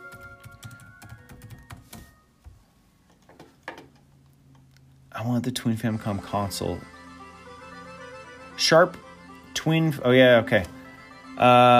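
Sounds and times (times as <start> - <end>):
quiet typing on a computer keyboard: 0.0 - 2.1
speech: 5.2 - 7.0, 8.6 - 9.0, 9.6 - 10.8, 11.4 - 11.7.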